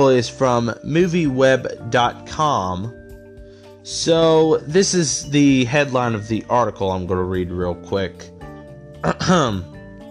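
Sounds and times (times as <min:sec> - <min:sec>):
speech: 0:00.0 - 0:03.0, 0:03.9 - 0:08.3, 0:09.0 - 0:09.7
throat clearing: 0:09.0 - 0:09.7.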